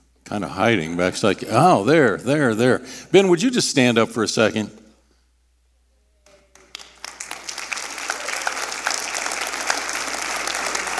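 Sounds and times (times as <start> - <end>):
speech: 0.3 - 4.8
audience clapping: 6.2 - 10.9.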